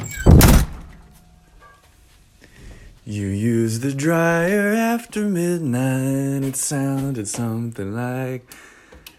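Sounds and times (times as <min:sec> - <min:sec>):
door shutting: 0:00.0 - 0:01.0
speech: 0:03.1 - 0:08.7.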